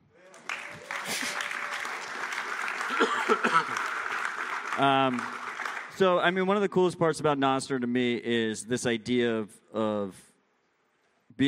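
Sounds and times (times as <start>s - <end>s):
audience clapping: 0.2s - 6.4s
speech: 4.8s - 5.4s, 6.0s - 10.3s.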